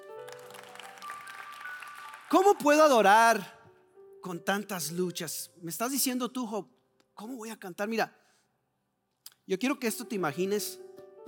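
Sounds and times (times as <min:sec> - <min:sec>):
audience applause: 0:00.0 - 0:03.0
speech: 0:02.3 - 0:03.6, 0:04.2 - 0:08.2, 0:09.5 - 0:10.8.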